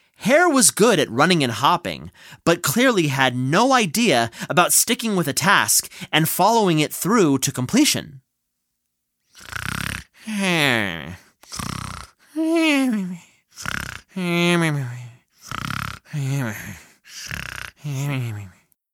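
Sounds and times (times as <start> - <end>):
speech: 0.2 - 8.2, 9.4 - 11.8, 12.4 - 15.0, 16.1 - 18.6
person imitating snoring: 9.3 - 18.7.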